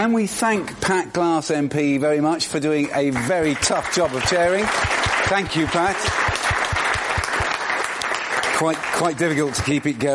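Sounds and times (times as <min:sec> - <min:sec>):
speech: 0:00.0 - 0:06.3, 0:08.6 - 0:10.1
audience applause: 0:03.1 - 0:10.1.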